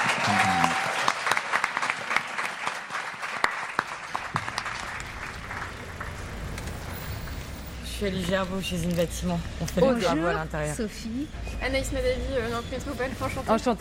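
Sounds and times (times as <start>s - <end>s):
audience applauding: 0.0s - 7.6s
speech: 8.0s - 13.8s.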